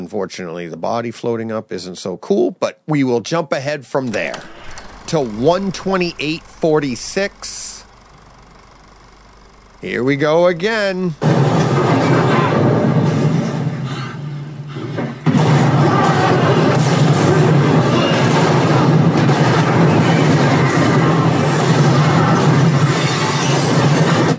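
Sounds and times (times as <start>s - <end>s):
speech: 0.1s - 7.8s, 9.8s - 11.9s
depth charge explosions in a movie soundtrack: 4.0s - 13.9s, 15.2s - 24.3s.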